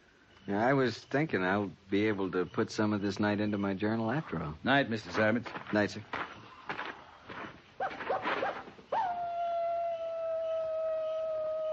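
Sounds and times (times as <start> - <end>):
speech: 0.5 - 6.3
coyote howling: 7.8 - 11.7.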